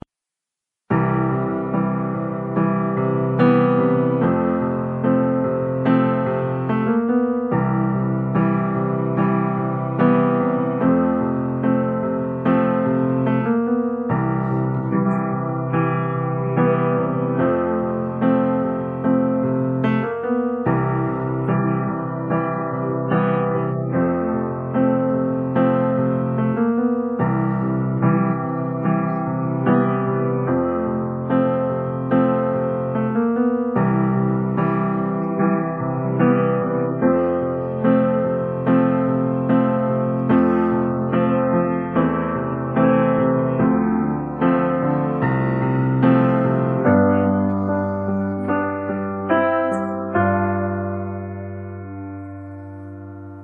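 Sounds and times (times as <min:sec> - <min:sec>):
musical accompaniment: 0:00.9 - 0:53.4.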